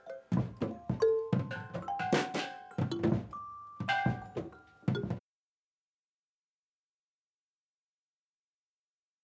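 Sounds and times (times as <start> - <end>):
improvised music: 0.0 - 5.2.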